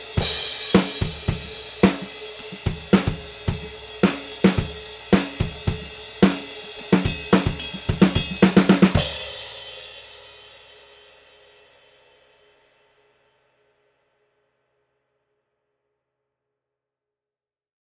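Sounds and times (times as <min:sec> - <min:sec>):
groove music: 0:00.0 - 0:09.4.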